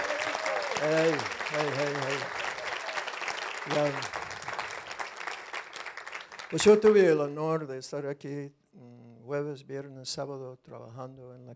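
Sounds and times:
audience applauding: 0.0 - 7.2
speech: 0.8 - 2.4, 3.7 - 4.2, 6.5 - 11.5.

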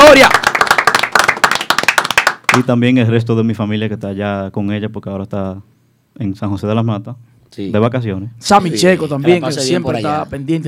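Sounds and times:
hands clapping: 0.0 - 2.7
speech: 2.6 - 10.6.

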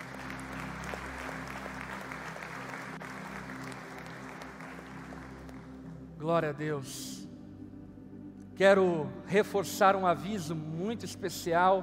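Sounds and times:
audience clapping: 0.0 - 6.0
low hum: 5.0 - 11.2
speech: 6.2 - 7.2, 8.6 - 11.8.

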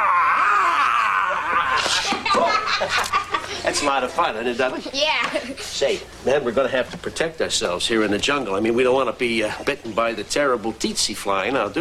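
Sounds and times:
voice imitating a roar: 0.0 - 1.9
laughter: 0.5 - 4.2
speech: 2.8 - 11.7.

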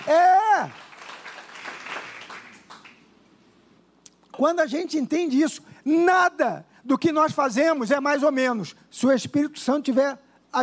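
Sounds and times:
audience applause: 0.0 - 3.0
speech: 4.4 - 10.6.

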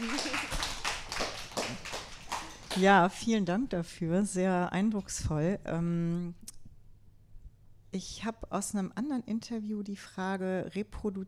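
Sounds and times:
small audience clapping: 0.0 - 3.1
speech: 2.8 - 6.4, 7.9 - 11.2.

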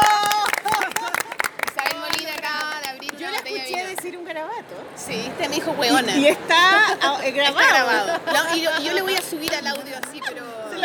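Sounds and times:
applause: 0.0 - 4.2, 9.2 - 10.2
speech: 4.6 - 10.5
laughter: 6.0 - 10.8.

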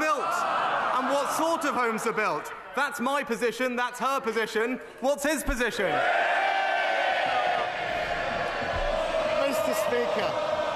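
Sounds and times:
parliament members cheering: 0.0 - 2.4, 5.8 - 10.7
speech: 1.1 - 6.4, 9.9 - 10.5.

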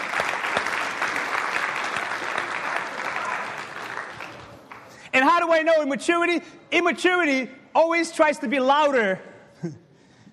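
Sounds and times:
crowd applauding: 0.0 - 5.2
speech: 5.2 - 9.8.

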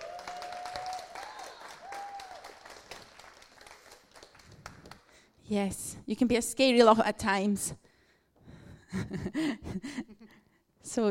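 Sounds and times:
audience cheering and applauding: 0.0 - 5.0
speech: 5.5 - 7.8, 8.9 - 10.1.

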